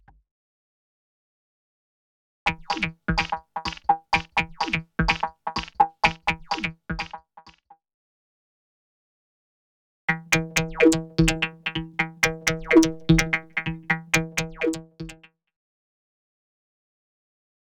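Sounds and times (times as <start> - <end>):
non-stop 126 bpm music loop: 2.5 - 7.2, 10.1 - 15.2.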